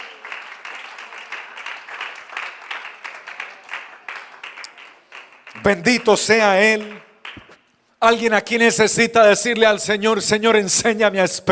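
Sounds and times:
audience applauding: 0:00.0 - 0:07.6
speech: 0:05.6 - 0:07.0, 0:08.0 - 0:11.5.

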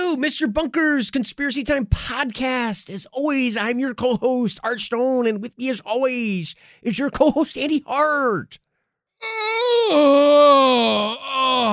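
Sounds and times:
speech: 0:00.1 - 0:08.6, 0:09.2 - 0:11.7
person yawning: 0:09.2 - 0:11.7.

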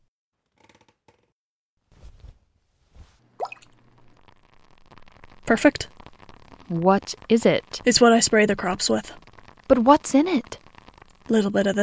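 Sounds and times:
partridge berries dropping into a liquid brew: 0:03.4 - 0:04.4, 0:05.0 - 0:11.8
speech: 0:05.5 - 0:06.0, 0:06.7 - 0:10.6, 0:11.3 - 0:11.8.

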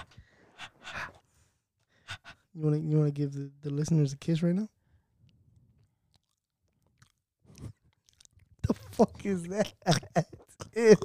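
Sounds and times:
breathing into a microphone: 0:00.0 - 0:02.5
speech: 0:02.6 - 0:04.8, 0:09.0 - 0:11.0.

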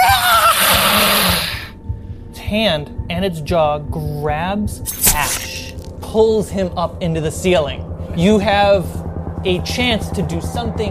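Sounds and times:
person imitating alien creature scream: 0:00.0 - 0:01.7, 0:04.9 - 0:05.8
speech: 0:02.5 - 0:10.9.

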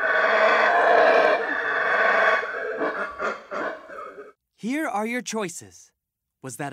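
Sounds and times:
howler monkey roar: 0:00.0 - 0:04.4
speech: 0:04.7 - 0:06.7.

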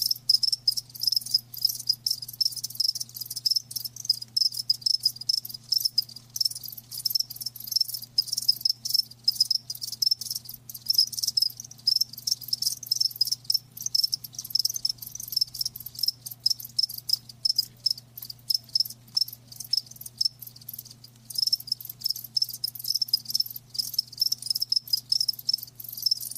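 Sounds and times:
crickets chirping: 0:00.0 - 0:26.3.

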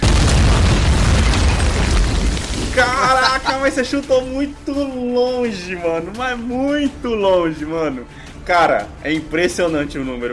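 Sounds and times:
bomb explosion: 0:00.0 - 0:03.6
laughter: 0:02.8 - 0:03.9
speech: 0:03.6 - 0:10.3.

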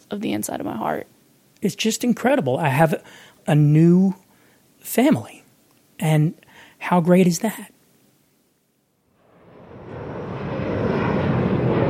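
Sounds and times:
speech: 0:00.1 - 0:04.2, 0:04.8 - 0:05.4, 0:06.0 - 0:07.7
airplane landing at an airport: 0:09.2 - 0:11.8.

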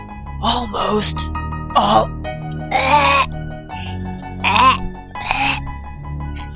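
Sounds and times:
speech: 0:00.4 - 0:03.1
person retching: 0:00.4 - 0:05.7, 0:06.4 - 0:06.5.

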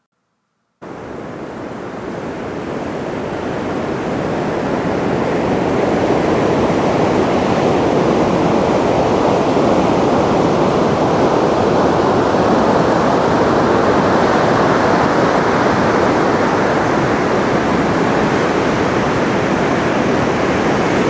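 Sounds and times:
surf roaring at Cannon Beach, Oregon: 0:00.8 - 0:21.0.

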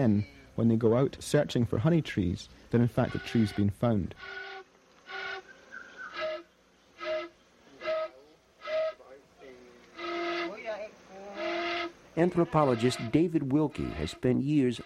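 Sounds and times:
speech: 0:00.0 - 0:04.4, 0:12.2 - 0:14.8
Efe honey whistle being blown: 0:04.2 - 0:09.1, 0:10.0 - 0:10.6, 0:12.6 - 0:14.8.

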